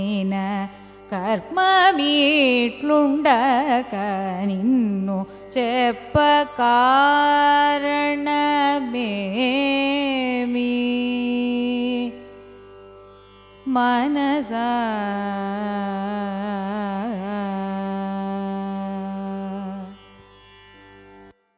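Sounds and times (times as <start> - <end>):
carnatic raga music: 0.0 - 21.5.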